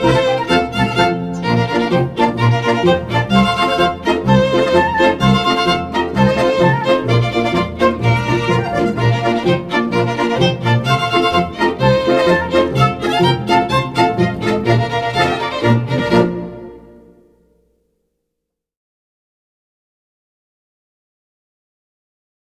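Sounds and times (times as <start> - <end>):
polka music: 0.0 - 17.4.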